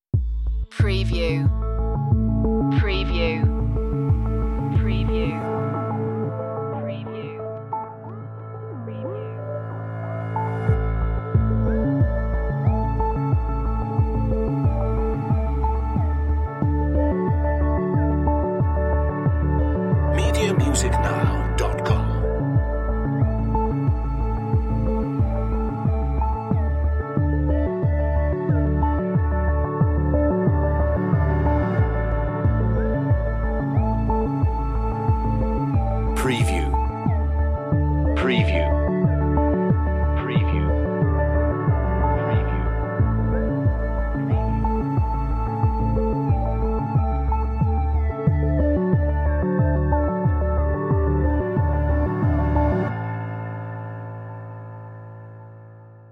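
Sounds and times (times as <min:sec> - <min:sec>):
soothing corporate music: 0:00.8 - 0:56.1.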